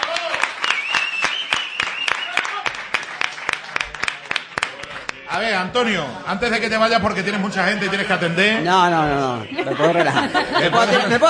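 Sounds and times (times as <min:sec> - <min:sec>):
audience applause: 0:00.0 - 0:05.4
speech: 0:05.4 - 0:11.2
laughter: 0:06.9 - 0:11.2.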